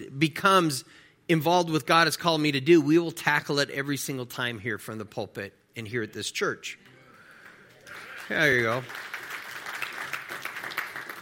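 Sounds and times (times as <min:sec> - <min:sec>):
speech: 0:00.2 - 0:06.9, 0:07.9 - 0:09.1
church congregation applause: 0:07.2 - 0:11.2.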